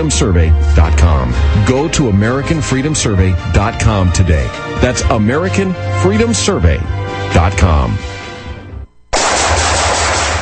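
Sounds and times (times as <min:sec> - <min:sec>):
speech: 0:00.0 - 0:08.1
automatic gunfire: 0:09.1 - 0:10.4.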